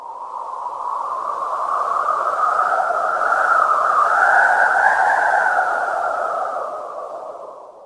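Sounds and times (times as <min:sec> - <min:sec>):
wind: 0:00.0 - 0:07.8.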